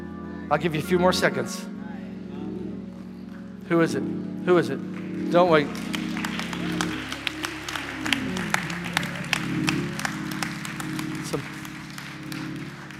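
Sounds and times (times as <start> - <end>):
speech: 0.5 - 1.8, 3.7 - 6.0
audience clapping: 4.8 - 12.9
faint crowd murmur: 5.8 - 12.9.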